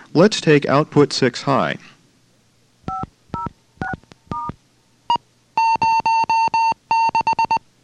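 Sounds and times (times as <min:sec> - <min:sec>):
speech: 0:00.1 - 0:01.9
Morse code tones: 0:02.9 - 0:04.6, 0:05.6 - 0:07.6
high beep: 0:05.6 - 0:07.6.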